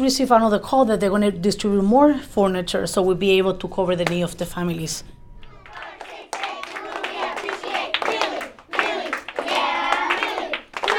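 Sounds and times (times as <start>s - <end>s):
speech: 0.0s - 5.2s
third graders shouting excitedly: 5.2s - 8.4s
third graders clapping rhythmically: 5.5s - 10.9s.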